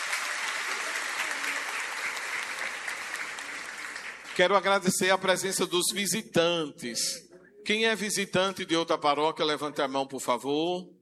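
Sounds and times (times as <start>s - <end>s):
audience applause: 0.0s - 4.8s
speech: 4.4s - 11.0s.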